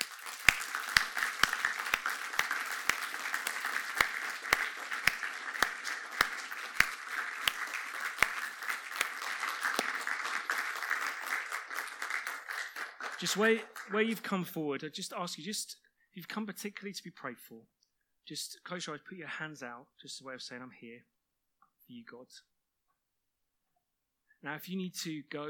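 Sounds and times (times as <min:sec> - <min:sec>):
audience applause: 0:00.0 - 0:14.2
speech: 0:13.2 - 0:21.2, 0:21.9 - 0:22.5, 0:24.4 - 0:25.4.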